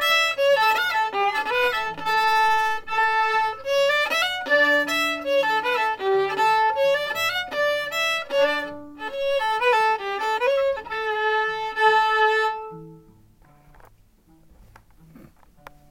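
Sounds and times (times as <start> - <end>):
halling folk dance music: 0.0 - 12.6.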